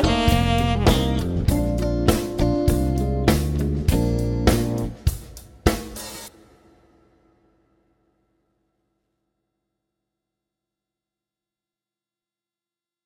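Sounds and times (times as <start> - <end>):
blues music in B flat: 0.0 - 6.3.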